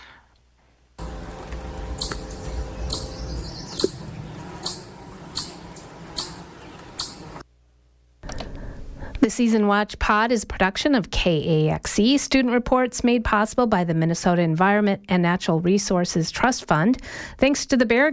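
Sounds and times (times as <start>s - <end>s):
low rumble: 1.0s - 7.4s
chipmunk alarm call: 1.8s - 7.4s
speech: 9.2s - 18.1s.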